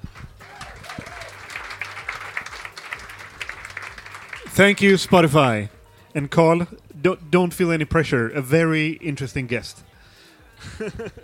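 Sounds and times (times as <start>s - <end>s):
audience applause: 0.0s - 5.2s
speech: 4.6s - 9.9s, 10.6s - 11.2s
laughter: 10.6s - 11.2s.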